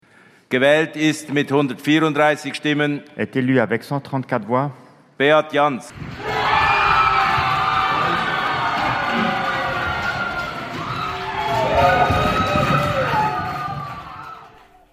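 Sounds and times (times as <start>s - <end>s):
speech: 0.5s - 6.2s
loud cheering after election announcement: 6.0s - 14.9s.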